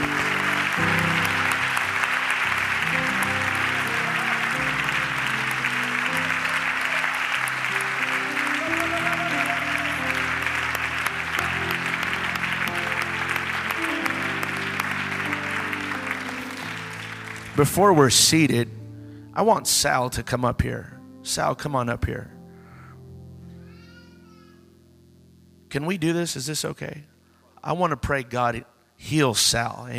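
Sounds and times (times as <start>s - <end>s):
audience hand clapping: 0.0s - 18.1s
speech: 17.6s - 18.8s, 19.4s - 22.4s, 25.7s - 29.9s.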